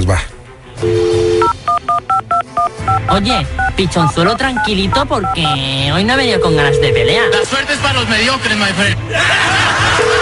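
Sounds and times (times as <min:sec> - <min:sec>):
speech: 0:00.1 - 0:01.0, 0:01.9 - 0:10.1
telephone keypad dialing tones: 0:00.9 - 0:05.6, 0:06.3 - 0:07.4
laughter: 0:09.1 - 0:10.2.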